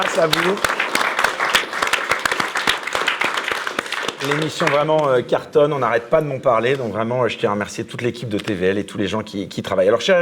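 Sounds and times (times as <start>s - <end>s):
speech: 0.0s - 0.8s, 4.2s - 10.2s
audience applause: 0.0s - 5.2s.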